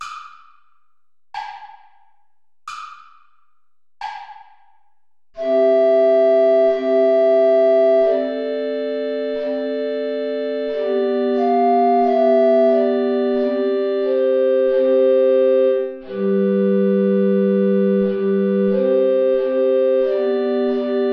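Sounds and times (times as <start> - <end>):
play-along backing music: 5.4 - 21.1.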